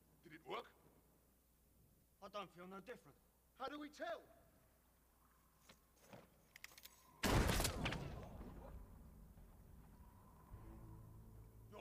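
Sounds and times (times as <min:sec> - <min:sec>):
speech: 0:02.2 - 0:04.4
gunshot: 0:07.2 - 0:08.8.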